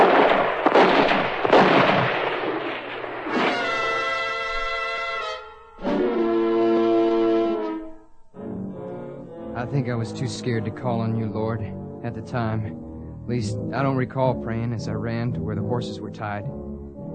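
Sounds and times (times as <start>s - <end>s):
gunfire shootout: 0.0s - 5.3s
horn-like tones: 3.4s - 9.8s
speech: 9.8s - 16.6s.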